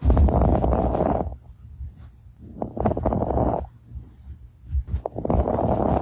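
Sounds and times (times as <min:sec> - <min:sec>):
lung crackles of pulmonary fibrosis via stethoscope: 0:00.0 - 0:06.0.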